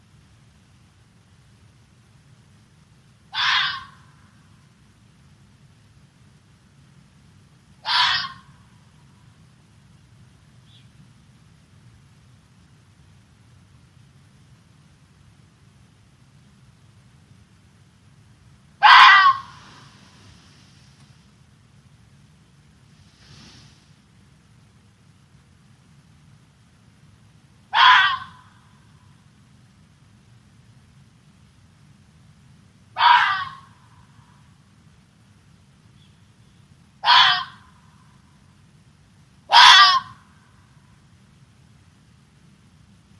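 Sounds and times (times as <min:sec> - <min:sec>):
Eurasian eagle-owl screeching in a black marble quarry: 0:03.3 - 0:04.1, 0:07.8 - 0:08.5, 0:18.8 - 0:20.0, 0:27.7 - 0:28.6, 0:33.0 - 0:33.8, 0:37.0 - 0:37.8, 0:39.5 - 0:40.3.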